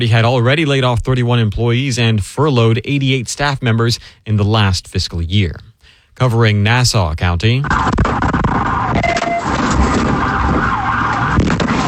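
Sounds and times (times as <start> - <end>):
speech: 0.0 - 8.2
police siren wailing during a vehicle pursuit in Fernandina Beach: 8.6 - 11.8.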